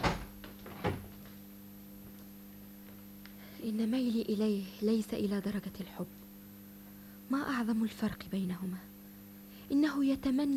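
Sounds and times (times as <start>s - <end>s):
door opening with a creak and shutting with a heavy clunk: 0.0s - 1.3s
speech: 3.6s - 6.2s, 7.3s - 8.9s, 9.7s - 10.5s.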